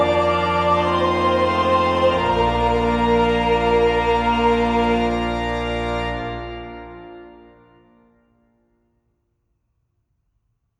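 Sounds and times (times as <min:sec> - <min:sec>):
wedding choir singing tutti: 0:00.0 - 0:06.4.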